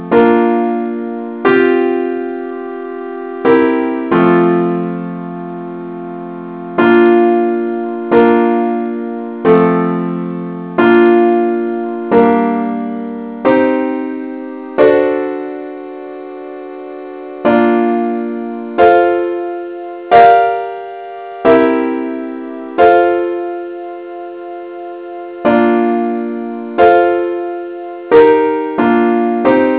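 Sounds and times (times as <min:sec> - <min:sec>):
simple accompaniment in B-flat: 0:00.0 - 0:29.7.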